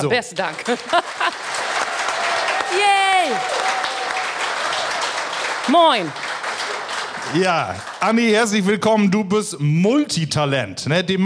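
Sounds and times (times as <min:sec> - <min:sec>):
speech: 0:00.0 - 0:01.3, 0:05.7 - 0:06.3, 0:07.3 - 0:11.2
audience applause: 0:00.0 - 0:08.8
laughter: 0:00.5 - 0:01.8.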